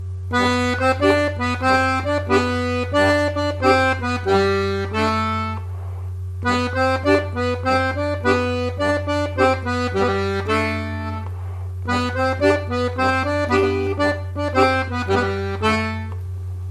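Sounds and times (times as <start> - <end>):
swing music: 0.4 - 5.6, 6.6 - 11.2, 12.0 - 16.1.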